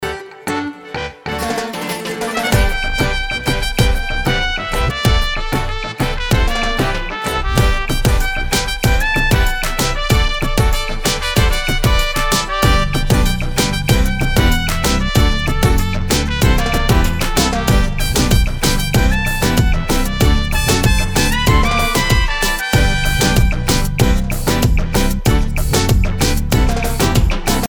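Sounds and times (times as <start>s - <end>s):
punchy Latino trumpet in dancehall test: 0.0s - 27.6s.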